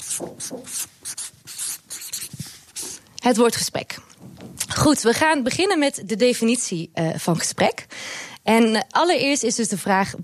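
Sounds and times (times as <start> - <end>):
word being written down by hand: 0.0 - 3.0
speech: 0.2 - 1.0, 3.2 - 10.2.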